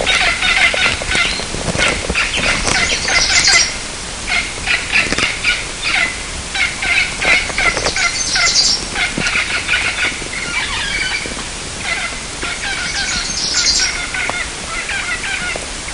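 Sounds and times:
birds clucking: 0.0 - 15.9
steady background hiss: 0.0 - 15.9.

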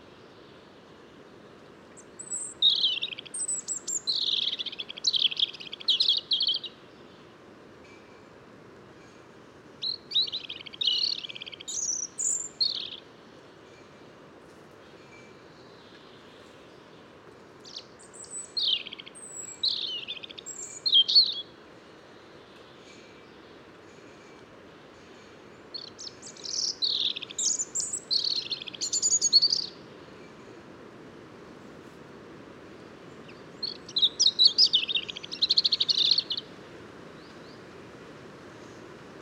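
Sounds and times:
steady hiss: 0.0 - 39.2
European robin song: 1.2 - 7.4, 9.8 - 13.2, 14.9 - 23.7, 25.1 - 30.7, 32.8 - 37.8.

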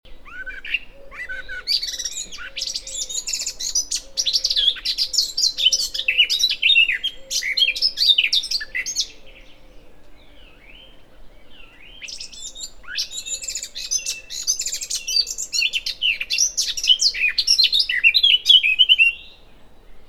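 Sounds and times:
Eurasian blackcap singing: 0.1 - 9.2, 11.9 - 19.3.

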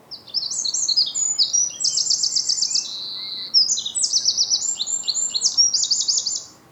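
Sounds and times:
Eurasian wren trilling song: 0.1 - 6.6.

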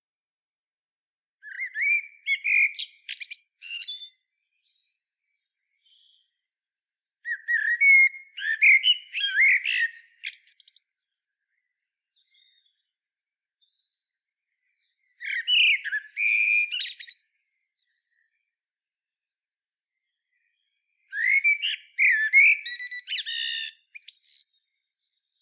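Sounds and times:
common blackbird singing: 1.4 - 4.9, 7.2 - 11.0, 13.6 - 18.3, 20.1 - 25.4.

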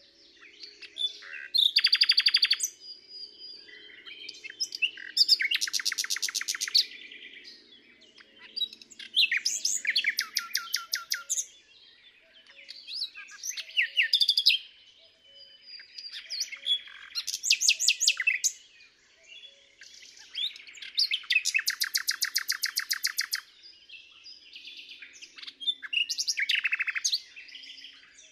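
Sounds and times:
common nightingale Luscinia megarhynchos singing rapid repeated notes: 0.0 - 28.2.

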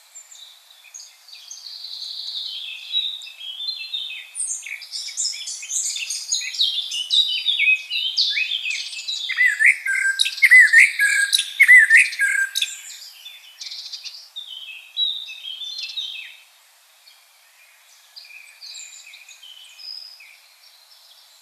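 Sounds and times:
common blackbird singing: 0.2 - 16.4, 17.5 - 21.4.

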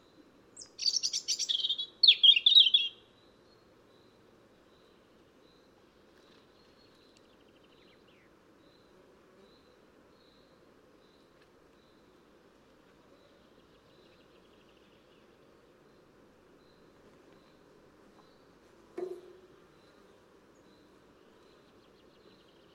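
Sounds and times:
European robin (Erithacus rubecula) song with high warbled phrases: 0.6 - 3.0.

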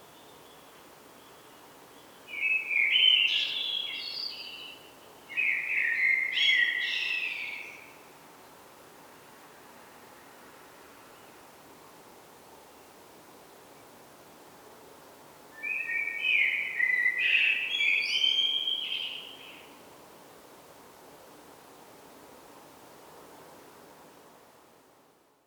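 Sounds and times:
faint steady background hiss: 0.0 - 25.4
common blackbird song: 0.1 - 8.0, 15.6 - 19.8.

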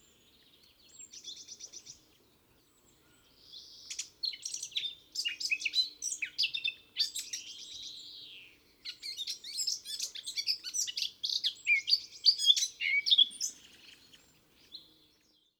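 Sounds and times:
Eurasian blackcap singing: 3.5 - 15.4.

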